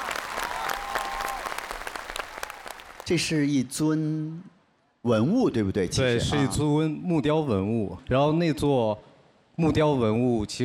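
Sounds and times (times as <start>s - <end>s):
audience applause: 0.0s - 3.2s
speech: 3.1s - 10.6s.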